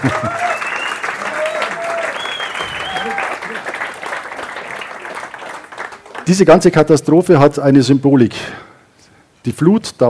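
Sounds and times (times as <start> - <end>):
speech: 0.0 - 0.4, 6.3 - 8.7, 9.4 - 10.0
audience applause: 0.0 - 6.8.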